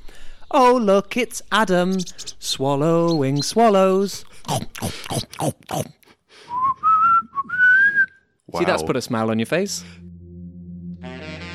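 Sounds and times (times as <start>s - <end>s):
speech: 0.5s - 6.5s, 8.5s - 10.0s
person whistling a tune: 6.5s - 8.3s.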